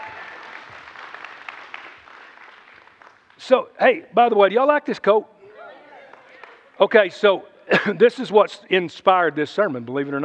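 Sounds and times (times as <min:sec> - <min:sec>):
audience applause: 0:00.0 - 0:03.4
speech: 0:03.4 - 0:05.3, 0:06.8 - 0:10.2.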